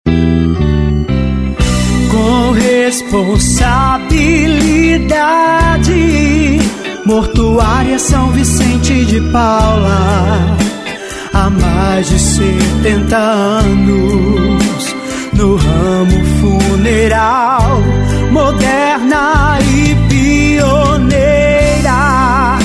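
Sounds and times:
funeral jingle: 0.1 - 22.6.

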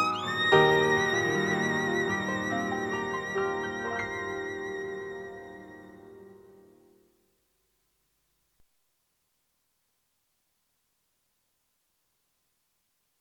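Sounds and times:
piano and violin: 0.0 - 6.9.

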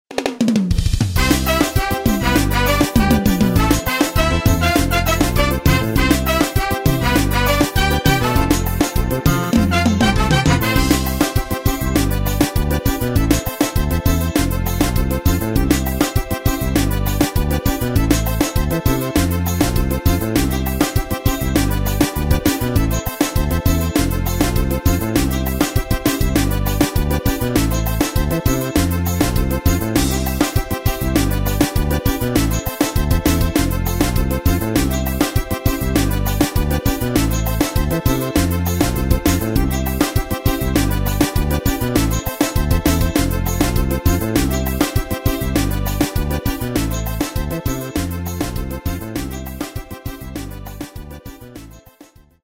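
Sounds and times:
forró backing track: 0.1 - 52.4.

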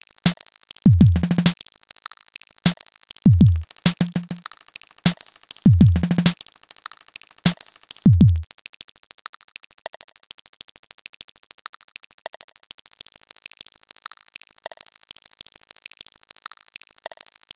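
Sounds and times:
instrumental rap beat: 0.9 - 1.6, 3.3 - 8.4.

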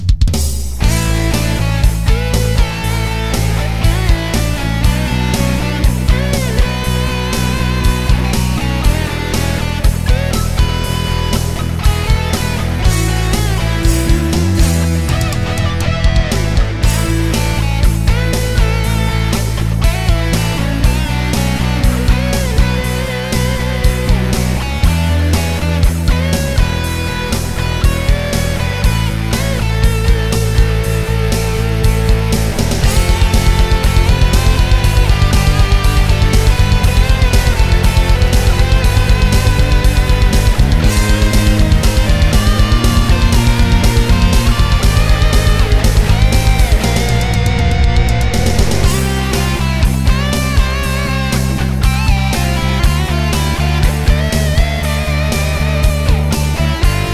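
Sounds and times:
instrumental music: 0.2 - 57.1.

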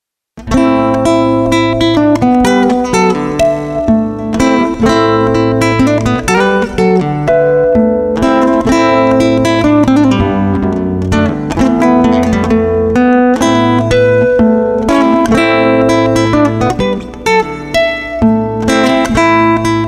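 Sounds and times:
instrumental music: 0.4 - 19.8.

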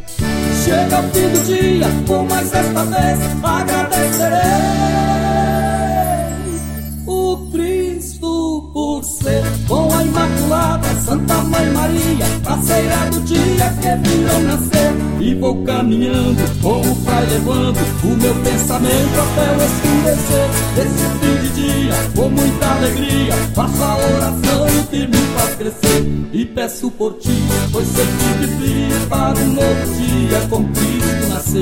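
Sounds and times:
entrance song singing: 0.3 - 8.0, 9.2 - 31.6.

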